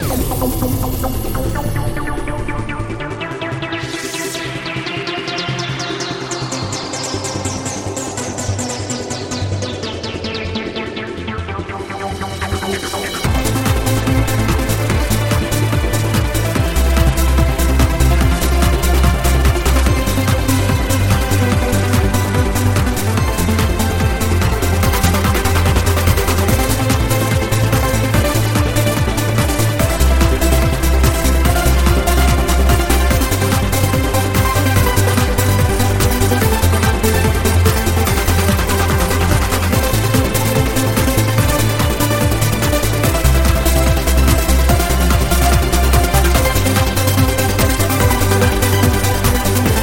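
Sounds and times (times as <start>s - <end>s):
background music: 0.0s - 49.8s.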